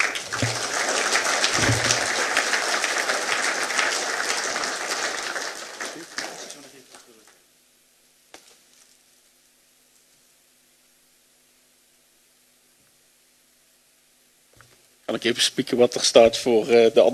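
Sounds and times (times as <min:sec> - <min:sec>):
applause: 0:00.0 - 0:07.4
speech: 0:15.2 - 0:17.1.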